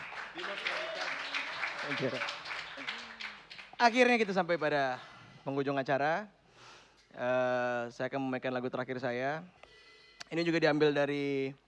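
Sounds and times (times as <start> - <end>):
audience applause: 0.0 - 4.0
speech: 0.4 - 1.0, 1.8 - 2.4, 3.8 - 6.4, 7.2 - 9.6, 10.3 - 11.6.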